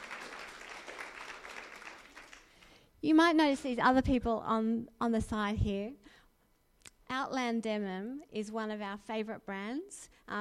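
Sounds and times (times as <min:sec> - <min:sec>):
audience applause: 0:00.0 - 0:02.6
speech: 0:03.0 - 0:06.0, 0:07.1 - 0:10.4.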